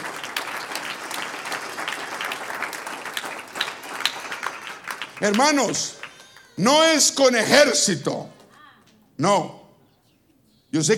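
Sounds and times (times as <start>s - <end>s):
audience applause: 0.0s - 6.6s
speech: 5.2s - 6.0s, 6.6s - 8.4s, 9.2s - 9.6s, 10.7s - 10.9s.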